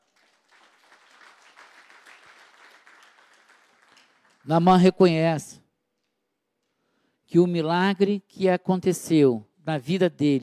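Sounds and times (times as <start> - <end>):
audience applause: 0.0 - 4.5
speech: 4.4 - 5.6, 7.3 - 10.4.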